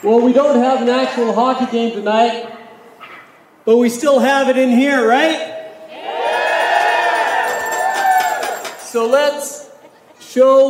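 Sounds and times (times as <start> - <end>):
speech: 0.0 - 2.6, 3.6 - 5.5, 8.9 - 9.6, 10.3 - 10.6
neighbors cheering and whooping: 5.9 - 9.2.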